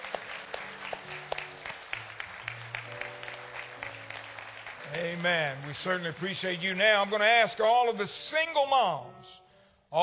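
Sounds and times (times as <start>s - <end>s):
audience applause: 0.0s - 8.0s
speech: 4.9s - 10.0s.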